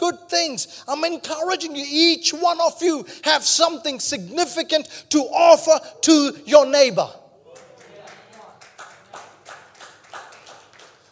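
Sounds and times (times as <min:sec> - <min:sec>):
speech: 0:00.1 - 0:07.2
a few people clapping: 0:07.5 - 0:11.1.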